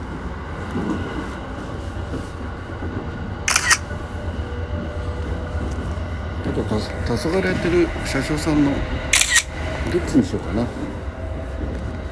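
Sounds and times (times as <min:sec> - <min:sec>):
low rumble of a moving train carriage: 0:00.0 - 0:12.1
camera shutter click: 0:03.5 - 0:03.8, 0:09.2 - 0:09.5
speech: 0:06.6 - 0:09.0, 0:09.9 - 0:11.0.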